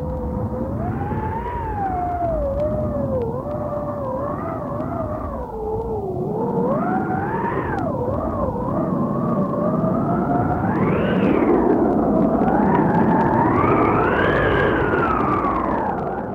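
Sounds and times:
strong wind: 0.0s - 16.3s.

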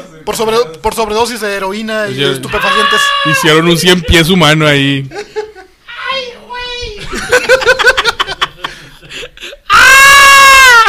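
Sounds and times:
speech: 0.1s - 5.3s
person screaming: 2.4s - 4.1s, 9.7s - 10.8s
laughter: 3.6s - 5.9s, 7.0s - 9.7s.

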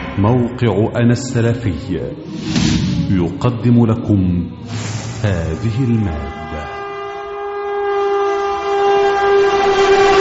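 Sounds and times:
speech: 0.2s - 6.4s
train horn blaring: 4.5s - 10.1s.

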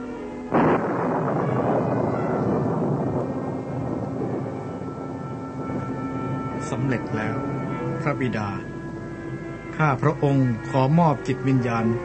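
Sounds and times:
thunder and lightning strike: 0.5s - 8.4s
speech: 6.7s - 8.6s, 9.8s - 12.0s.

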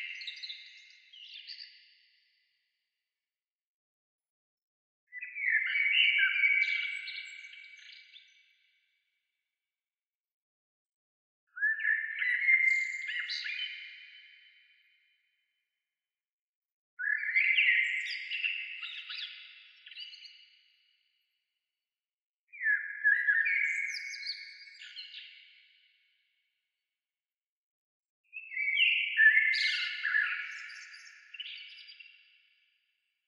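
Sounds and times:
bird song of whistled and warbled notes: 5.1s - 8.3s, 11.5s - 14.5s, 17.0s - 20.5s, 22.5s - 25.5s, 28.3s - 32.1s.

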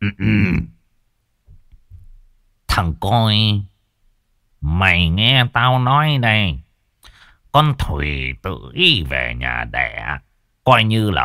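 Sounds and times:
man clearing his throat: 0.0s - 0.8s
speech: 2.8s - 3.7s, 4.6s - 6.6s, 7.6s - 11.2s.

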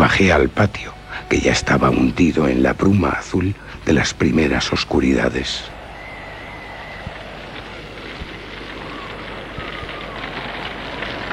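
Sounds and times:
fire of piled firewood burning in a fireplace with strong chimney draw: 0.0s - 11.3s
speech: 0.2s - 5.8s.

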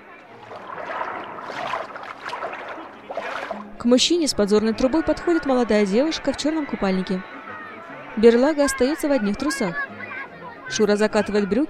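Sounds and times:
front crawl swimming splashes in sea: 0.0s - 4.0s
speech: 3.8s - 7.3s, 8.2s - 9.9s, 10.7s - 11.6s.

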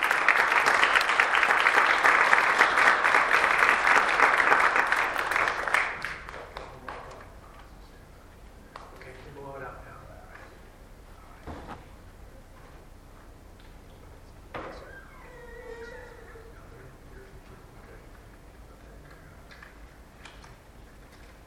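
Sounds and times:
church congregation applause for a family after a baptism: 0.0s - 7.3s.

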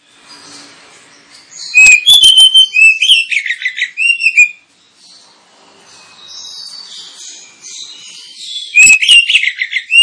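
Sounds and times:
Oriental magpie-robin singing loudly: 0.0s - 10.0s.

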